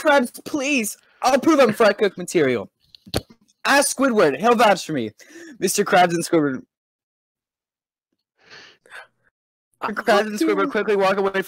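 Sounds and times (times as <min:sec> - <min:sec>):
speech: 0:00.0 - 0:06.7, 0:09.8 - 0:11.4
cartoon character SpongeBob taking a deep breath: 0:05.2 - 0:05.6, 0:08.4 - 0:09.3.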